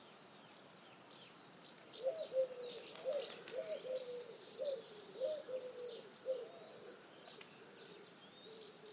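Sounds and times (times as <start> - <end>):
pigeon cooing: 2.0 - 7.0.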